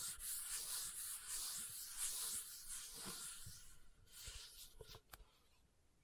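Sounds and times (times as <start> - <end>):
leather being scratched: 0.0 - 4.8.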